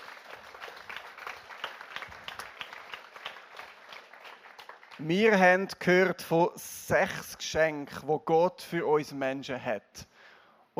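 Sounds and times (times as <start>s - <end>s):
audience applause: 0.0s - 5.4s
speech: 5.0s - 10.1s.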